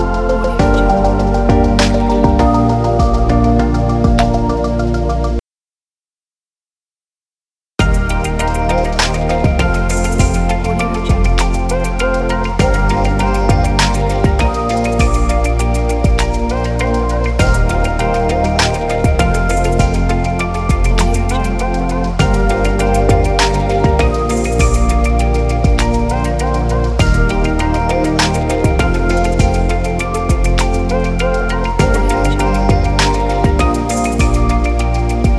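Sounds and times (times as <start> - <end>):
inspiring ambient music: 0.0 - 5.4, 7.8 - 35.3.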